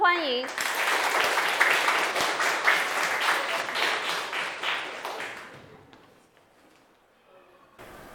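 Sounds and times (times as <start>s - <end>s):
classroom applause: 0.2s - 6.0s.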